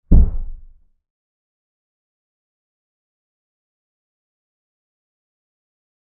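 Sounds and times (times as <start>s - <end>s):
single female stomping footsteps from upstairs: 0.1s - 0.8s.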